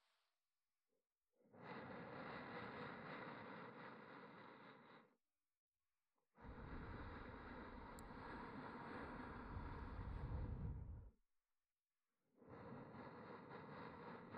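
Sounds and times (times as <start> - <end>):
ASMR breathy sighs: 1.4 - 5.2, 6.3 - 11.2, 12.4 - 14.3.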